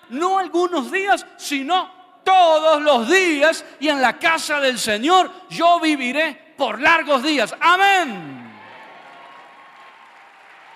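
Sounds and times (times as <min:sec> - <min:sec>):
speech: 0:00.1 - 0:08.4
audience applauding: 0:08.5 - 0:10.7.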